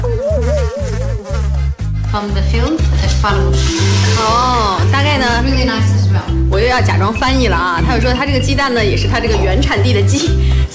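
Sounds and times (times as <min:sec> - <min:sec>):
fly buzzing: 0:00.0 - 0:01.8
speech: 0:02.2 - 0:10.7.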